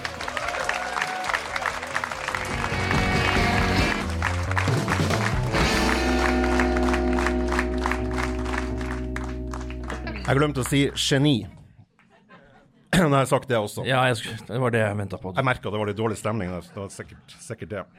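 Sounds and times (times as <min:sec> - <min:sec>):
applause: 0:00.0 - 0:11.3
speech: 0:10.3 - 0:11.6, 0:13.0 - 0:17.9.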